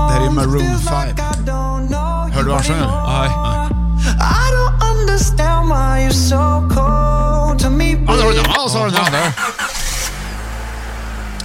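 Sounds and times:
speech: 0.3s - 9.6s
car engine cold start: 8.1s - 11.4s.

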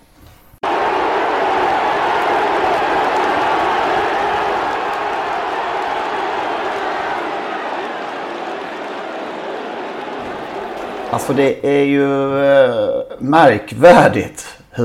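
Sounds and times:
large crowd roaring and cheering at a race: 0.6s - 12.0s
speech: 11.2s - 14.8s.

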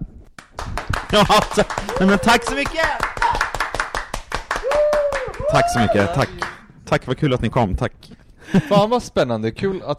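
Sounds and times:
audience applause: 0.5s - 6.6s
laughter: 1.1s - 2.5s, 8.4s - 9.0s
speech: 1.1s - 3.1s, 5.5s - 9.9s.

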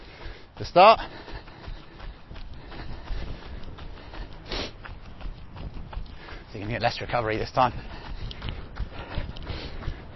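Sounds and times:
runner jogging back after a 200 m sprint: 0.0s - 10.1s
speech: 0.6s - 1.2s, 6.6s - 8.0s.

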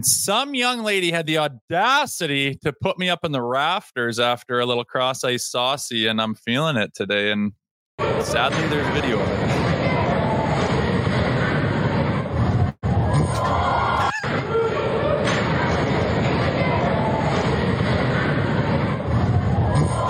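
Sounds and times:
speech: 0.0s - 9.6s
crowd reaction at a hockey game: 8.0s - 20.0s.

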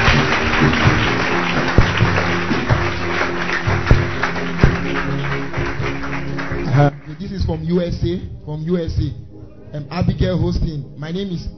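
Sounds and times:
audience clapping: 0.0s - 8.2s
speech: 7.5s - 11.5s.

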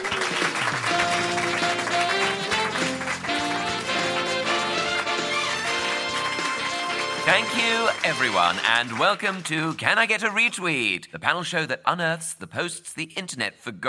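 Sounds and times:
audience applause: 0.0s - 10.5s
speech: 7.5s - 13.8s.

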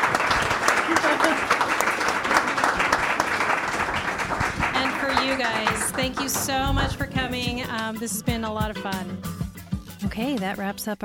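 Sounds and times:
round of applause: 0.0s - 7.1s
speech: 6.0s - 9.4s, 10.2s - 11.0s.

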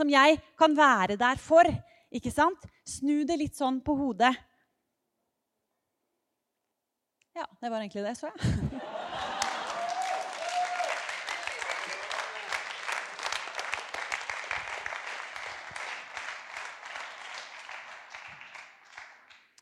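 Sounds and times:
speech: 0.0s - 4.5s, 7.4s - 9.0s
laughter: 8.4s - 13.6s
audience applause: 8.8s - 19.5s.

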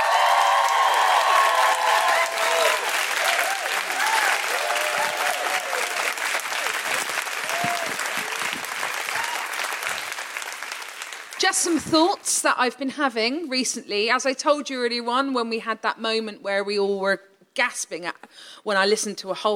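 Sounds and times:
audience woohooing: 0.0s - 10.0s
audience applause: 0.0s - 11.8s
speech: 11.6s - 19.5s.

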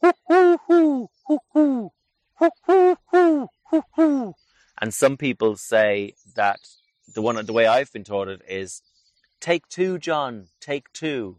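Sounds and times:
human voice imitating the five-note call of a wood pigeon: 0.0s - 4.4s
speech: 4.9s - 11.3s.

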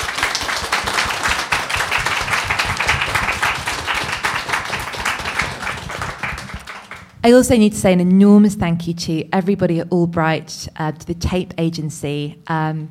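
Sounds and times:
audience applause: 0.0s - 7.2s
speech: 7.2s - 12.8s.

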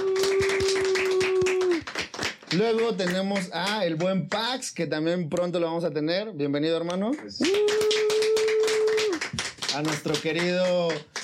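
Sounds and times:
audience applause for a guest: 0.0s - 4.1s, 7.3s - 11.2s
speech: 2.5s - 8.0s, 9.8s - 11.2s.

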